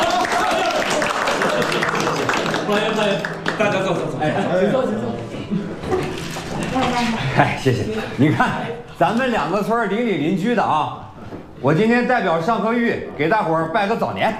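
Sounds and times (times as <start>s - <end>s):
group of people applauding: 0.0s - 4.6s
laughter: 0.0s - 9.0s
speech: 2.7s - 5.7s, 6.8s - 11.0s, 11.6s - 14.3s.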